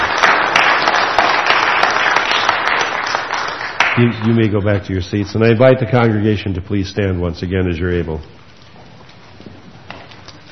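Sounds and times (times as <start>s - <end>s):
audience applause: 0.0s - 4.5s
speech: 4.0s - 8.4s.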